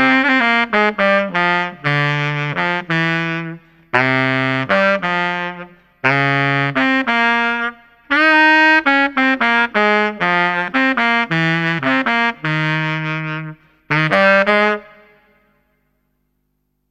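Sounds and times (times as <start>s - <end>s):
saxophone: 0.0s - 15.8s.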